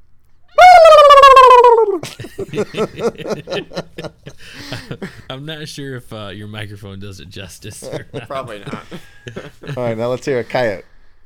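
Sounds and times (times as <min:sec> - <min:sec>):
person imitating a turkey gobble: 0:00.6 - 0:02.0
laughter: 0:01.2 - 0:05.4, 0:07.6 - 0:10.5
speech: 0:02.5 - 0:10.9.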